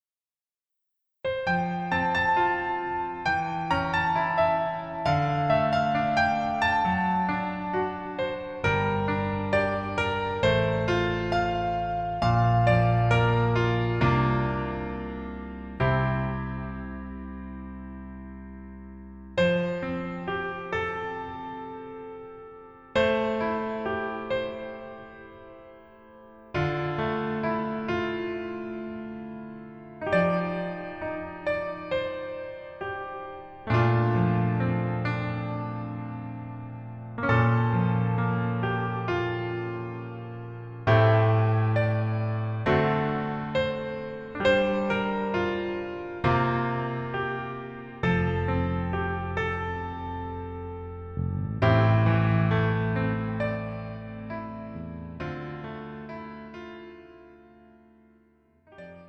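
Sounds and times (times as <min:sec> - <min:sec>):
piano version lowered by one key: 0:01.2 - 0:59.0.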